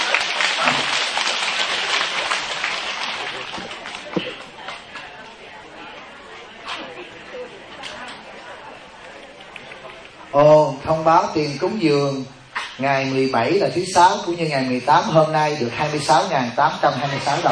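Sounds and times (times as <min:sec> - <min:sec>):
audience applause at a religious gathering: 0:00.0 - 0:04.9
crowd chatter at a religious gathering: 0:00.0 - 0:17.4
speech: 0:10.4 - 0:17.4.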